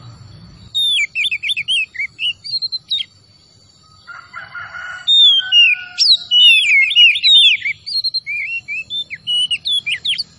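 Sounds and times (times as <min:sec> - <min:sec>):
Oriental magpie-robin singing: 0:00.0 - 0:03.2, 0:05.0 - 0:10.3.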